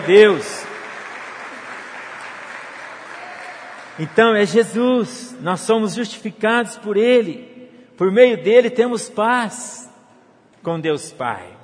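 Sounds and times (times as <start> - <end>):
speech: 0.0 - 0.6, 4.0 - 9.9, 10.6 - 11.6
audience applauding: 0.0 - 4.4.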